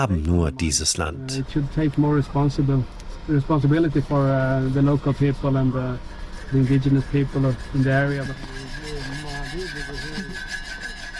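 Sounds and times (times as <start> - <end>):
speech: 0.0 - 10.2
scrubbing clean an iron pan: 4.2 - 11.1.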